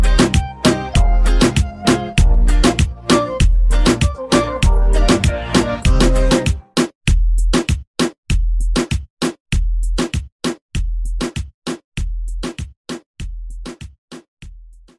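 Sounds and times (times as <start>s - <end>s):
upbeat reggaeton beat at 98 BPM: 0.0s - 14.9s.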